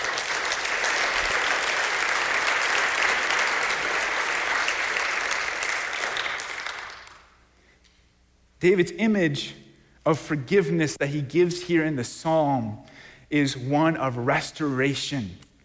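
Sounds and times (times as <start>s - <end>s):
audience cheering and applauding: 0.0s - 7.3s
speech: 8.6s - 15.4s.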